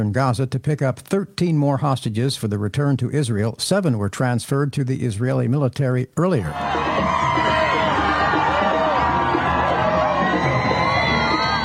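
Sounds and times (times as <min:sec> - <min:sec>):
speech: 0:00.0 - 0:07.6
crowds cheering as hostage convoy passes: 0:06.5 - 0:11.6
high-pitched whoops: 0:06.5 - 0:11.6.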